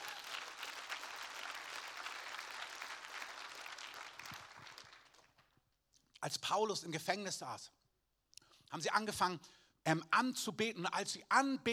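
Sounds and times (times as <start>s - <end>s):
audience applause: 0.0s - 5.5s
speech: 6.3s - 7.8s, 8.7s - 11.7s.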